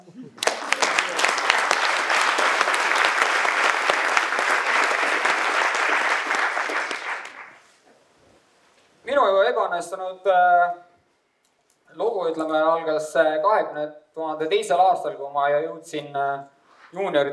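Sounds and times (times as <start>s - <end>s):
audience applause: 0.4s - 7.6s
speech: 9.8s - 10.8s, 12.0s - 17.3s.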